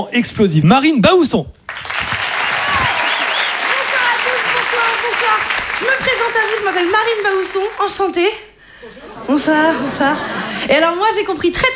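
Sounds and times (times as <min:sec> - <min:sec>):
speech: 0:00.0 - 0:01.9, 0:05.8 - 0:11.7
audience applause welcoming a comedian at a French comedy show: 0:01.7 - 0:08.6
laughter: 0:01.7 - 0:11.4.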